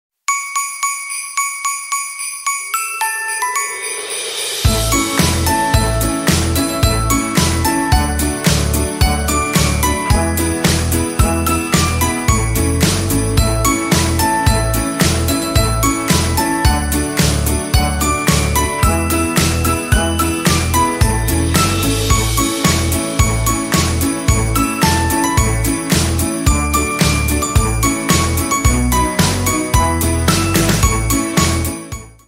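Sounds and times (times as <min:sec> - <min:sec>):
instrumental Christmas song: 0:00.3 - 0:32.2.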